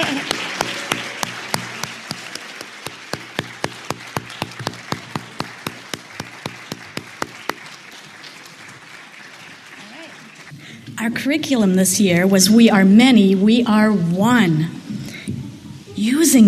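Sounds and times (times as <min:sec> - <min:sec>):
audience round of applause: 0:00.0 - 0:10.6
speech: 0:11.1 - 0:14.8, 0:16.0 - 0:16.4.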